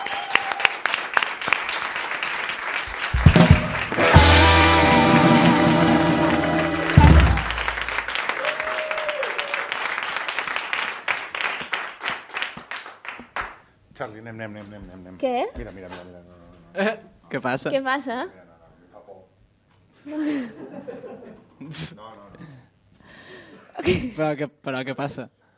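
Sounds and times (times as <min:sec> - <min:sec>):
audience applause: 0:00.0 - 0:13.4
loud music with a low sustained tonal bed: 0:03.2 - 0:08.0
speech: 0:14.3 - 0:18.4, 0:20.0 - 0:22.4, 0:23.8 - 0:25.4.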